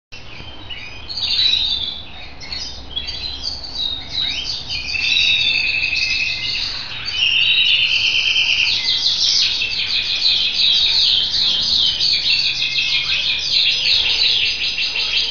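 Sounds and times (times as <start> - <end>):
Scotch Fancy canary singing with fast rattling trills: 0.2 - 15.3.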